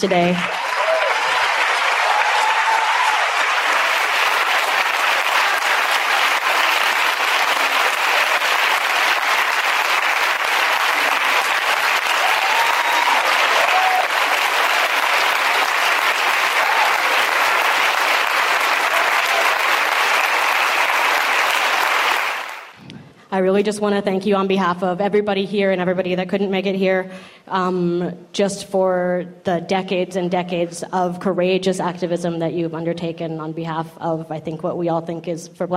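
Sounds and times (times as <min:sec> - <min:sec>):
speech: 0:00.0 - 0:00.6, 0:23.4 - 0:35.7
audience applause: 0:00.0 - 0:22.8.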